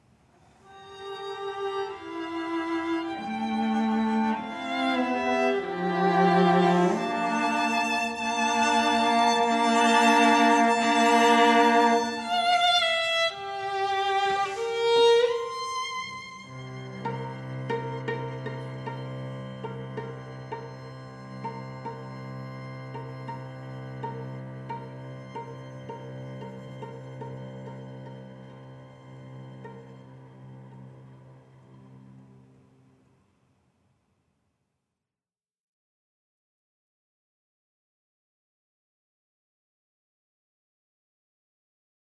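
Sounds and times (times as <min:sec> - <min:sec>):
string trio playing: 0:00.7 - 0:32.8.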